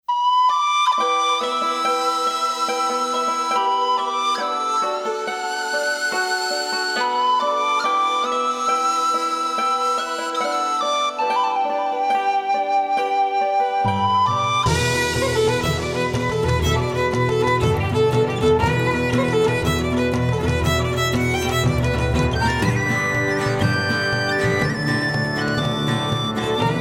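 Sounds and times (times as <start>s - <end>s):
Celtic music mix: 0.1s - 26.7s.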